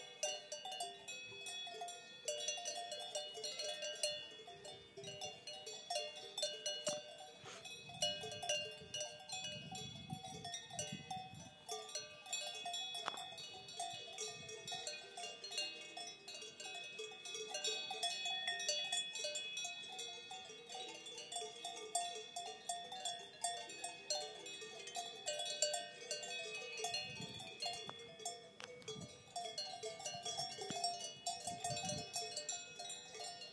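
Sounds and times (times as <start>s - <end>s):
Swiss cow bells: 0.0s - 33.5s.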